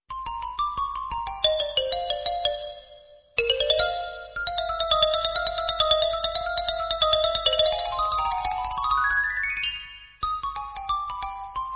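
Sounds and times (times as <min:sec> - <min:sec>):
xylophone: 0:00.1 - 0:11.7.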